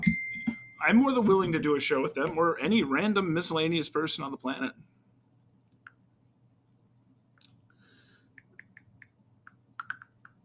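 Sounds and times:
speech: 0.8s - 4.9s
typing on a keyboard: 9.8s - 10.4s.

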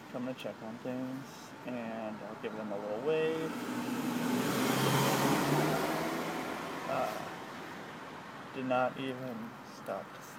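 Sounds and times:
speech: 0.1s - 4.1s, 4.9s - 5.9s, 6.9s - 7.3s, 8.6s - 10.3s
car driving past: 3.4s - 8.0s.

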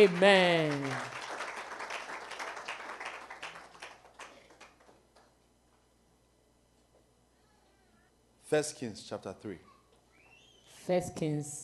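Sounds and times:
speech: 0.0s - 1.2s, 8.5s - 9.7s, 10.9s - 11.6s
audience clapping: 0.0s - 5.4s.

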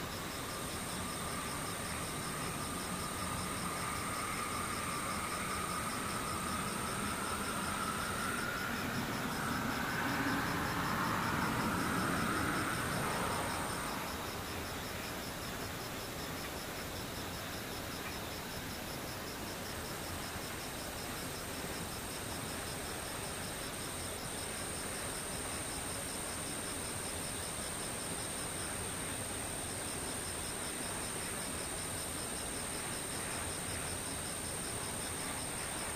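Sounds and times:
insects whining: 0.0s - 35.9s
vehicle passing: 6.0s - 14.2s.

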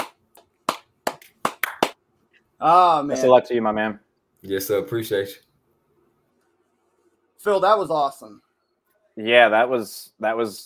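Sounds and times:
round of applause: 0.7s - 2.0s
speech: 2.6s - 5.5s, 7.4s - 8.4s, 9.2s - 10.6s.

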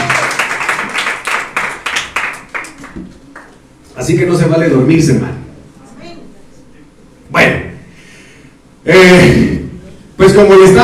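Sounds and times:
audience hand clapping: 0.0s - 3.7s
speech: 4.0s - 5.4s, 9.1s - 9.5s, 10.4s - 10.8s.

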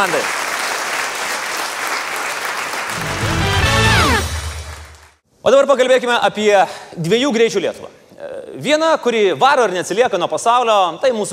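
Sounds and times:
speech: 0.0s - 0.5s, 5.4s - 11.3s
audience clapping for Vilnius University at a live event: 0.0s - 5.2s
music: 2.9s - 5.2s.

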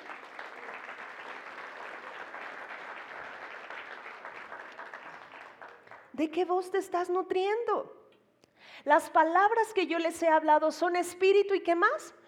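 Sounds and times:
audience applause: 0.0s - 6.0s
speech: 6.2s - 8.0s, 8.8s - 12.2s.

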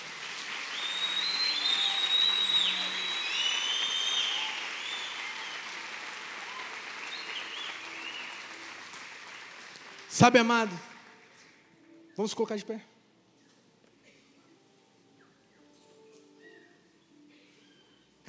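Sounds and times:
audience applause: 0.0s - 11.4s
speech: 10.2s - 10.9s, 12.2s - 12.9s.

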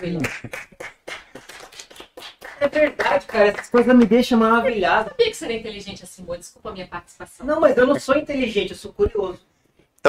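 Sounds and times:
speech: 0.0s - 0.8s, 2.6s - 10.0s
hand clapping: 0.0s - 4.3s.

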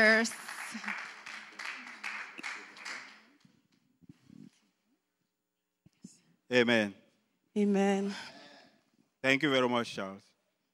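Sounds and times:
speech: 0.0s - 1.0s, 6.5s - 7.0s, 7.6s - 8.4s, 9.2s - 10.3s
crowd applauding: 0.0s - 3.6s.

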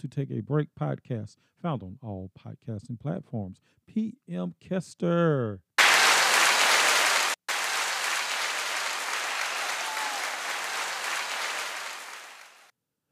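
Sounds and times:
speech: 0.0s - 5.7s
hand claps: 5.8s - 12.7s.

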